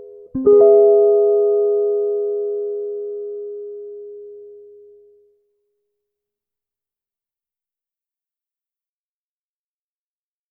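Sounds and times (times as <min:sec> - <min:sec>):
minor melodic scale in root position: 0:00.0 - 0:05.3.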